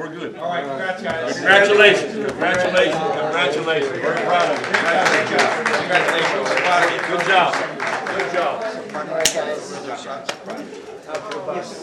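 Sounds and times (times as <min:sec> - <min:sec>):
speech: 0:00.0 - 0:11.8
hand clapping: 0:04.0 - 0:09.6, 0:10.2 - 0:10.5.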